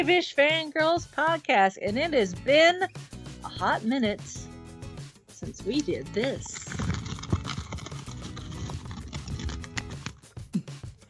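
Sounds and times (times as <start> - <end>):
speech: 0.0 - 4.5, 5.4 - 6.7
paper rustling: 6.2 - 10.2.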